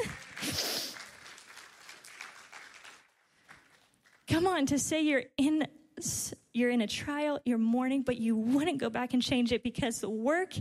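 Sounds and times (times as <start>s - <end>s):
audience clapping: 0.0s - 4.5s
speech: 4.4s - 10.5s.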